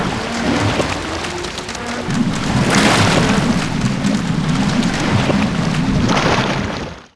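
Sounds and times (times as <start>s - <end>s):
ship destruction: 0.0s - 7.0s.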